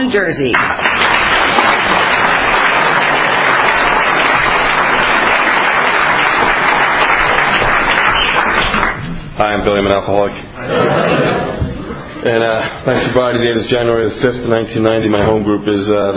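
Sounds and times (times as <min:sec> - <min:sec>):
speech: 0:00.1 - 0:01.0, 0:09.4 - 0:11.5, 0:12.2 - 0:16.1
audience applause at a sobriety meeting in Wall New Jersey: 0:00.6 - 0:09.1
laughter: 0:10.6 - 0:13.3.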